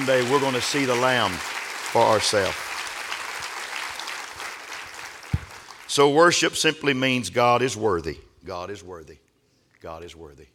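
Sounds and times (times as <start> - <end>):
speech: 0.0 - 2.7, 6.0 - 9.2, 9.8 - 10.5
crowd clapping: 0.0 - 6.2.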